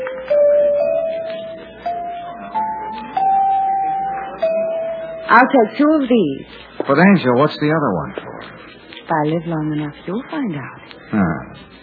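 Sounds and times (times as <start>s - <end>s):
chimes ringing: 0.0s - 5.8s
speech: 5.3s - 8.3s, 9.1s - 11.5s.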